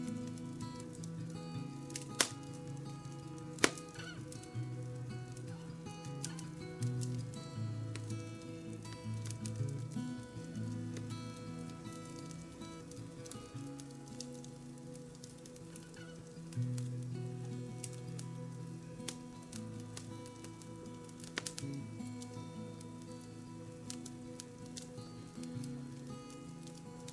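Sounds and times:
fire crackling: 0.0s - 27.1s
soft gentle music with sustained tones: 0.0s - 27.1s.

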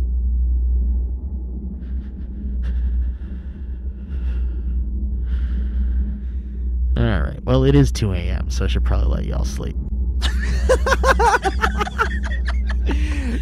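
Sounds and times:
airplane engine drone in flight: 0.0s - 13.4s
faint higher whining tones: 0.0s - 13.4s
speech: 7.5s - 9.9s, 10.7s - 13.4s
laughter: 10.2s - 13.4s.

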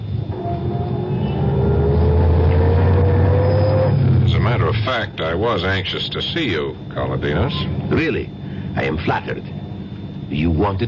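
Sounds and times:
Rolls-Royce engine droning as it pulls away from the curb in Paris: 0.0s - 4.7s
speech: 5.0s - 9.6s, 10.3s - 10.8s.

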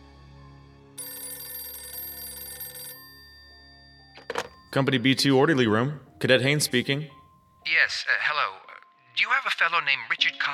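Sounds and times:
telephone bell ringing: 1.0s - 5.2s
speech: 4.7s - 8.6s, 9.4s - 10.5s.

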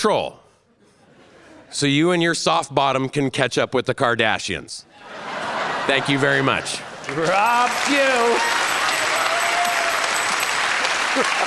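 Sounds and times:
speech: 0.0s - 0.4s, 1.7s - 8.6s, 11.2s - 11.4s
laughter: 5.0s - 11.4s
audience applause: 7.0s - 11.4s.

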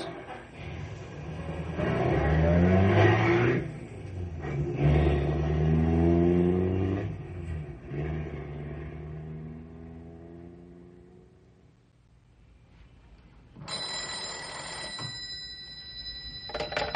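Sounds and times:
car engines warming up and revving: 0.0s - 11.4s.

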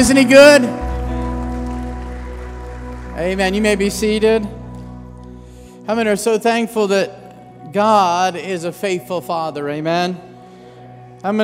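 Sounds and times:
speech: 0.0s - 0.8s, 3.2s - 4.6s, 5.8s - 10.3s, 11.2s - 11.4s
audience clapping and cheering: 0.0s - 5.8s.

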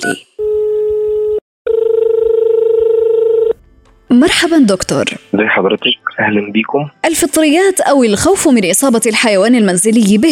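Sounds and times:
speech: 0.0s - 0.3s, 4.1s - 10.3s
telephone line tones from a call to Cairo airport: 0.0s - 3.6s.

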